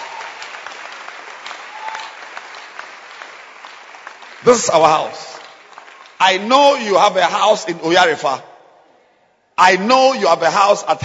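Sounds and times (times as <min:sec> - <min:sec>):
church congregation clapping: 0:00.0 - 0:08.0
speech: 0:04.4 - 0:05.3, 0:06.2 - 0:08.5, 0:09.6 - 0:11.0.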